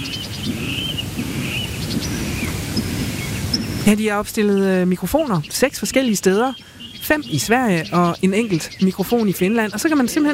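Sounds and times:
steady low rumble of wind: 0.0 - 9.9
birds singing outdoors by a lake: 0.0 - 10.3
speech: 3.9 - 10.3.

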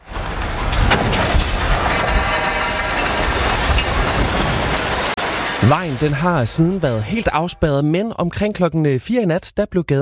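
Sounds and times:
50 metre scaffolding collapsing onto a roadway: 0.0 - 7.8
power lines torn down onto a roadway: 0.0 - 7.8
speech: 5.6 - 10.0.

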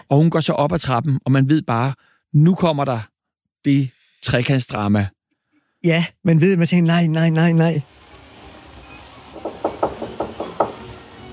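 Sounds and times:
speech: 0.1 - 5.2, 5.8 - 8.0
knocking on a wooden door: 9.3 - 11.2.

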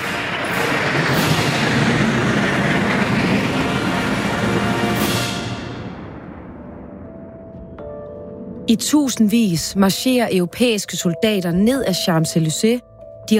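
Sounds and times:
fighter jet engines roaring: 0.0 - 7.5
speech: 8.7 - 13.3.

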